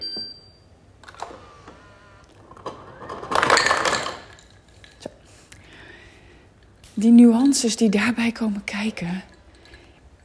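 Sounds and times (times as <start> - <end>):
ice being scooped, clattering: 3.0 - 4.7
speech: 7.0 - 9.3.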